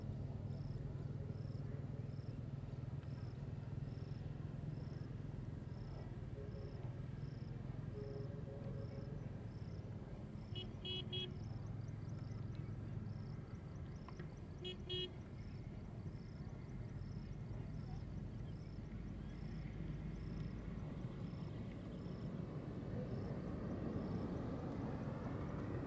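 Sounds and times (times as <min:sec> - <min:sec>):
motorbike in a village in Vietnam: 0:00.0 - 0:25.8
village ambience in Vietnam: 0:00.0 - 0:25.8.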